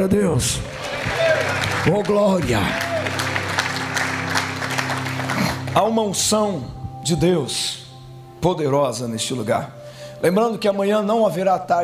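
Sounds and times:
speech: 0:00.0 - 0:02.8, 0:05.8 - 0:07.8, 0:08.4 - 0:11.8
audience applause: 0:00.6 - 0:05.8.

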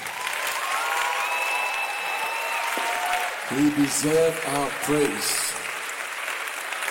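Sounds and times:
faint whistles and cheers: 0:00.0 - 0:03.6
audience clapping: 0:00.0 - 0:06.8
speech: 0:03.5 - 0:05.6.

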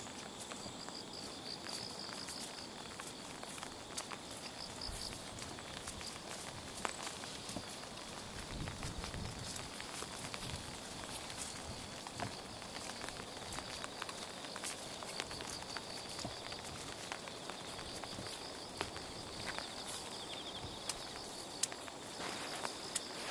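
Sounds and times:
footsteps along the Tama River in wet grass: 0:00.0 - 0:23.2
rain hissing: 0:00.0 - 0:23.2.

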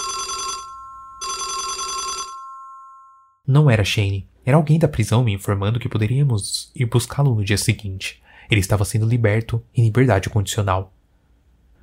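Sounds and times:
telephone ringing: 0:00.0 - 0:03.4
speech: 0:03.5 - 0:11.0.

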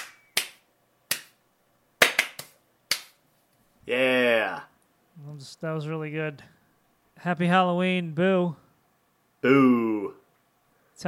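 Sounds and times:
hands slapping high fives: 0:00.0 - 0:01.4, 0:02.0 - 0:03.2
speech: 0:03.9 - 0:06.6, 0:07.2 - 0:08.6, 0:09.4 - 0:10.2.

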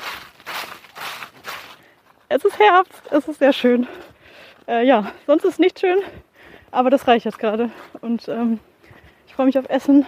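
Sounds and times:
footsteps rustling through fallen chestnut leaves in autumn: 0:00.0 - 0:04.1
speech: 0:02.3 - 0:04.1, 0:04.7 - 0:08.7, 0:09.4 - 0:10.0.

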